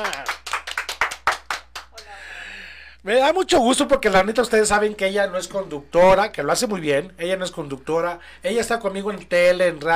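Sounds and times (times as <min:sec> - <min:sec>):
applause for a guest's arrival: 0:00.0 - 0:01.8
speech: 0:03.0 - 0:09.9.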